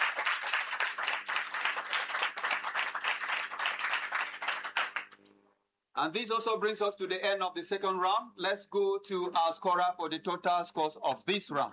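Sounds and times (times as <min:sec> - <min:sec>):
audience applause: 0:00.0 - 0:05.2
speech: 0:06.0 - 0:11.7.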